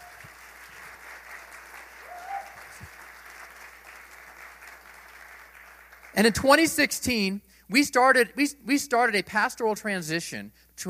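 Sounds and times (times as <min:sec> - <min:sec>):
round of applause: 0:00.0 - 0:06.9
speech: 0:06.2 - 0:10.8.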